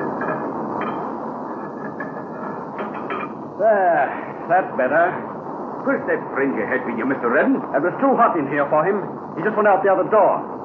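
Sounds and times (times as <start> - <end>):
metal furnace cover scraping and clanking back into place: 0.0 - 3.4
speech: 3.6 - 10.5.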